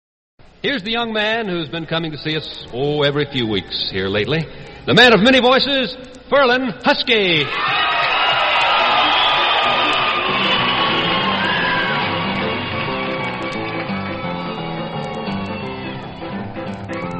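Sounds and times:
speech: 0:00.6 - 0:07.9
audience clapping: 0:07.6 - 0:17.1.

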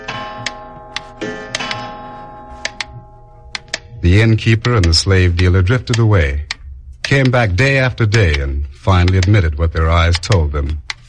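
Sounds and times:
clock striking two: 0:00.0 - 0:11.0
clock mechanical clicks and ticks: 0:03.5 - 0:11.0
speech: 0:04.0 - 0:06.5, 0:07.1 - 0:10.8.

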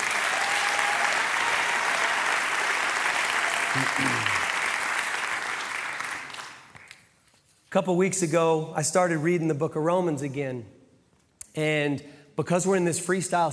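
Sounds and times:
church congregation at Red Rocks Church applauding: 0:00.0 - 0:07.1
speech: 0:03.8 - 0:04.5, 0:07.7 - 0:10.8, 0:11.6 - 0:13.5.

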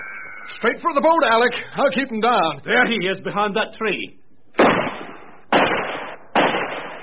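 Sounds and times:
speech: 0:00.5 - 0:04.7
gunshot: 0:04.6 - 0:07.0.

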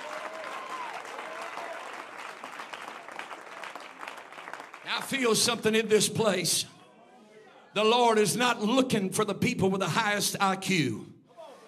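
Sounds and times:
audience clapping hands: 0:00.0 - 0:05.8
speech: 0:04.9 - 0:06.7, 0:07.8 - 0:11.1.

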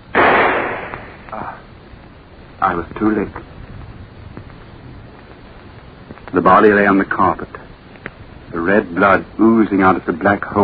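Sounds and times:
gunshot: 0:00.1 - 0:01.4
speech: 0:02.6 - 0:03.5, 0:06.4 - 0:07.6, 0:08.5 - 0:10.6.

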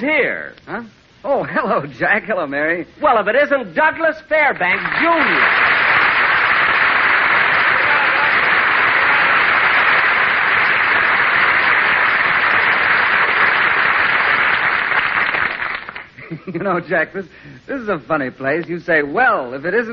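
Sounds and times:
speech: 0:00.0 - 0:05.7, 0:16.3 - 0:19.9
restaurant patrons applauding: 0:04.6 - 0:16.2.

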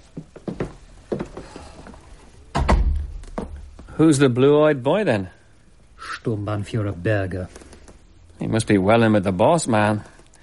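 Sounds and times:
door shutting: 0:02.5 - 0:03.5
speech: 0:04.0 - 0:05.4, 0:06.2 - 0:07.6, 0:08.4 - 0:10.1.

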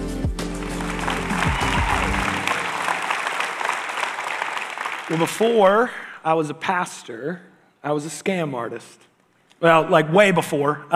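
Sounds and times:
audience applauding to welcome a speaker: 0:00.4 - 0:05.9
speech: 0:05.1 - 0:10.9.

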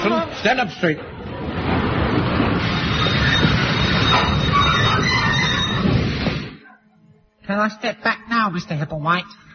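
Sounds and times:
approaching train: 0:00.2 - 0:06.6
speech: 0:00.3 - 0:01.2, 0:07.5 - 0:09.4.

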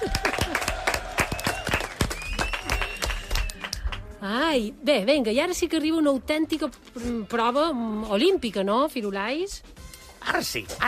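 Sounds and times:
audience applause: 0:00.0 - 0:04.1
speech: 0:04.2 - 0:10.8.

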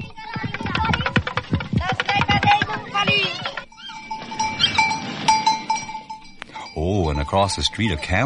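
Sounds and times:
ringing metallic tones: 0:00.0 - 0:08.2
toy drum rattle: 0:00.5 - 0:06.2
speech: 0:07.3 - 0:08.2.

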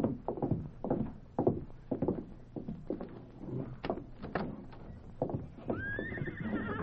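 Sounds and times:
horse hooves clopping: 0:00.0 - 0:06.8
horse neighing: 0:05.7 - 0:06.8.

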